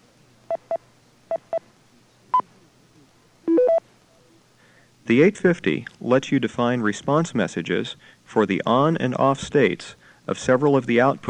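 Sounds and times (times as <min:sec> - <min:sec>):
remote controller touch-tone command bursts: 0:03.5 - 0:03.8
speech: 0:05.1 - 0:11.2.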